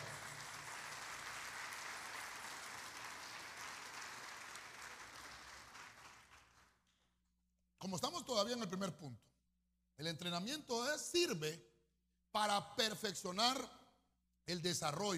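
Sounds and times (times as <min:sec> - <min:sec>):
audience clapping: 0:00.0 - 0:07.1
speech: 0:07.8 - 0:09.3, 0:10.0 - 0:11.7, 0:12.4 - 0:13.8, 0:14.5 - 0:15.1.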